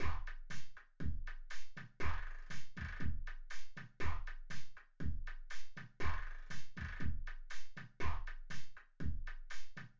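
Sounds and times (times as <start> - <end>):
synthetic drums with convolution reverb: 0.0 - 9.9.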